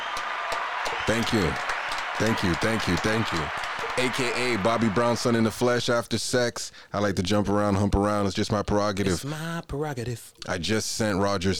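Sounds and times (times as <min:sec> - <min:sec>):
crowd applause: 0:00.0 - 0:05.8
speech: 0:01.1 - 0:11.5.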